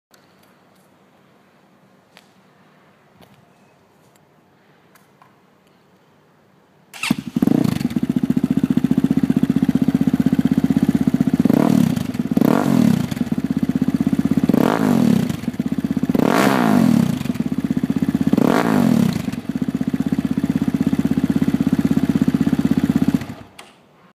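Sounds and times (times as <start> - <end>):
motorcycle: 7.0 - 23.6.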